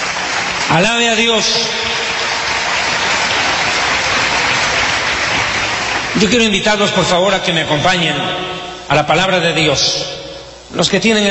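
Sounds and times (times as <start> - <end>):
audience applause: 0.0 - 6.9
speech: 0.7 - 1.9, 6.2 - 11.2.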